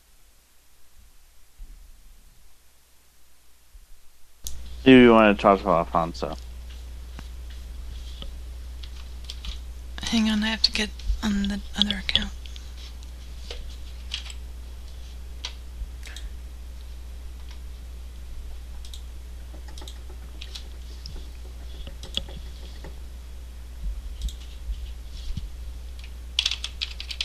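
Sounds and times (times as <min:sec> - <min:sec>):
steady low hum: 0:00.0 - 0:27.2
speech: 0:04.8 - 0:06.5, 0:10.1 - 0:12.4
typing on a computer keyboard: 0:18.8 - 0:23.0, 0:26.0 - 0:27.2.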